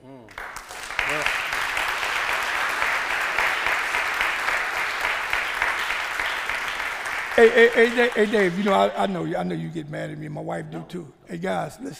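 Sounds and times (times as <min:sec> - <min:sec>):
audience applause: 0:00.3 - 0:09.2
speech: 0:07.4 - 0:11.9.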